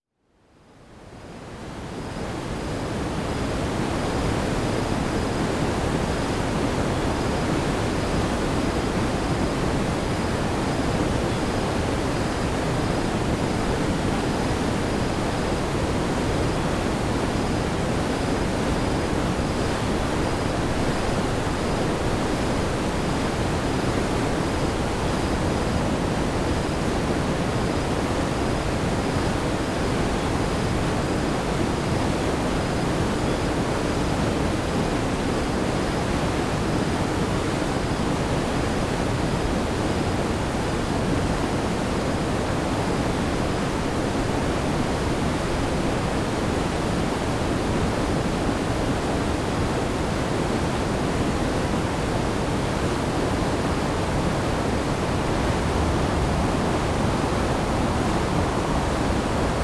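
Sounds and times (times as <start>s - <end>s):
waterfall: 0.6s - 59.6s.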